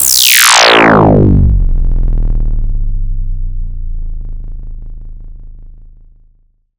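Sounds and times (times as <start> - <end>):
synth effects: 0.0 - 2.6.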